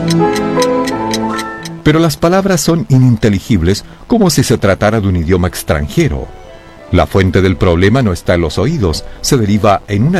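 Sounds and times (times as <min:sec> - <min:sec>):
speech: 0:00.0 - 0:00.4, 0:01.8 - 0:10.1
clock ticking: 0:00.0 - 0:04.2.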